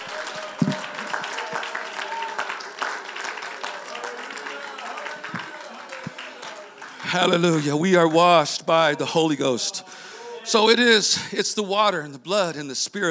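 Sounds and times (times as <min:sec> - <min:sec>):
audience clapping: 0:00.0 - 0:08.4
murmuring voices: 0:00.0 - 0:11.0
speech: 0:07.1 - 0:09.9, 0:10.5 - 0:13.0.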